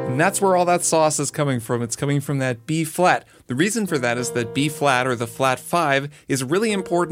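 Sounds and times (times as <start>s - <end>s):
speech: 0.2s - 7.1s
chords strummed from E minor to C dominant seventh: 3.9s - 7.1s.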